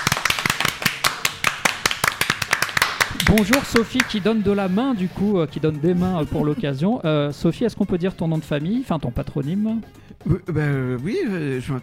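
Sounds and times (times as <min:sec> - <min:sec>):
two people applauding: 0:00.0 - 0:04.4
speech: 0:03.3 - 0:11.8.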